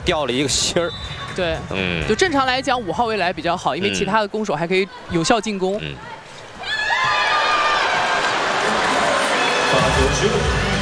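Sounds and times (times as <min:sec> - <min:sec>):
speech: 0:00.0 - 0:06.2, 0:09.7 - 0:10.6
stadium crowd clapping: 0:07.0 - 0:10.0.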